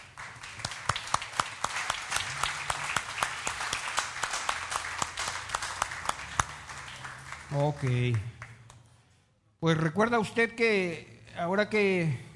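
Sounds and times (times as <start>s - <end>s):
applause: 0.0s - 9.0s
speech: 7.5s - 8.4s, 9.6s - 12.3s.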